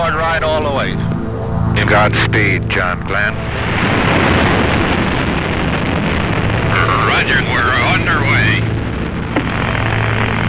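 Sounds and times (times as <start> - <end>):
harsh crackling hiss of rocket engine: 0.0 - 10.4
rocket engine roaring at launch: 0.0 - 10.4
speech: 0.4 - 1.2, 1.8 - 4.6, 7.2 - 8.7.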